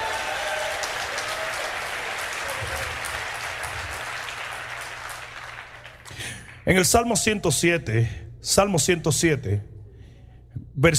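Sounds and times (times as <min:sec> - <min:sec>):
audience applause: 0:00.0 - 0:06.6
speech: 0:06.6 - 0:09.7, 0:10.8 - 0:10.9.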